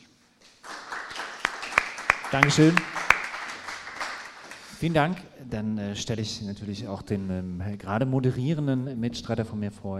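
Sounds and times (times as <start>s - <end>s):
audience applause: 0.6s - 4.8s
speech: 2.3s - 3.0s, 4.8s - 9.9s.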